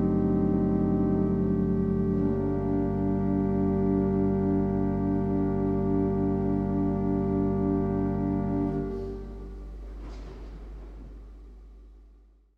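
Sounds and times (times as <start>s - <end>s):
organ soft bourdon stop with pedal: 0.0s - 9.8s.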